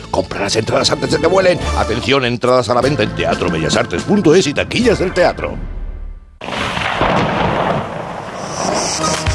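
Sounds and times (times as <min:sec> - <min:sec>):
speech: 0:00.2 - 0:05.8
rolling thunder: 0:05.6 - 0:09.2.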